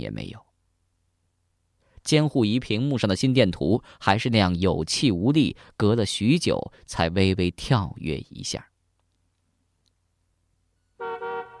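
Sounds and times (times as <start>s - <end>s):
speech: 0.0s - 0.5s, 2.0s - 8.7s
car horn honking outside: 11.0s - 11.5s.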